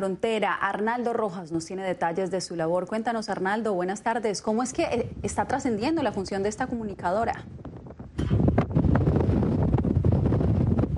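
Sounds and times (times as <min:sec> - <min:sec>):
speech: 0:00.0 - 0:07.6
strong gust of wind in the open desert at El Paso buffeting the microphone: 0:04.0 - 0:10.9.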